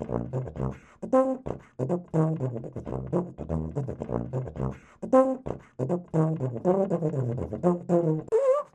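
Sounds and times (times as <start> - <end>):
tuba playing funk: 0.0 - 8.7.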